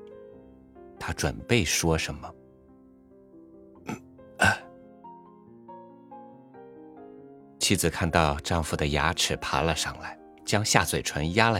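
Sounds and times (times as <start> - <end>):
speech: 1.0 - 2.4, 7.7 - 11.5
man clearing throat: 3.9 - 4.7.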